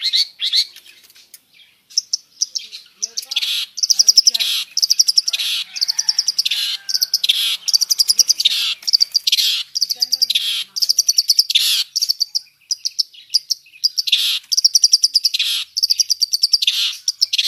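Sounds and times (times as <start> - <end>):
long-tailed shrike harsh scratchy song: 0.0 - 17.4.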